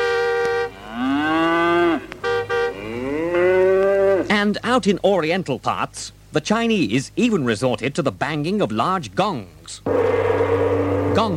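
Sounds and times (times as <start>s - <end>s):
animal horn being blown: 0.0s - 4.3s, 9.9s - 11.3s
speech: 4.5s - 10.5s, 11.2s - 11.3s.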